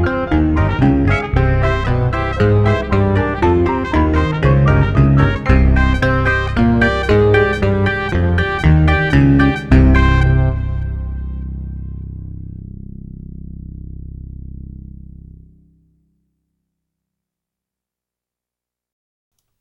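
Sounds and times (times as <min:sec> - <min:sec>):
fanfare: 0:00.0 - 0:11.5.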